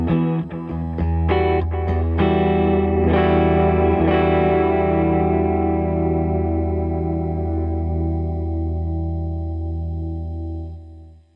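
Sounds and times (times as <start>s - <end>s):
clean guitar chords through Jensen BB40: 0.0s - 11.3s.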